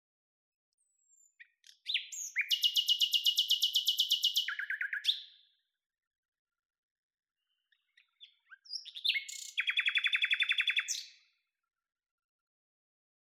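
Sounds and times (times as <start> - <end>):
common nightingale singing: 0.8 - 5.4, 7.7 - 11.2.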